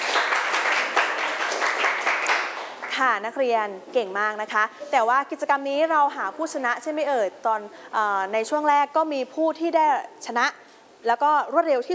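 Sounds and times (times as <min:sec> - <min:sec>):
classroom students clapping for themselves: 0:00.0 - 0:03.0
speech: 0:03.0 - 0:11.9.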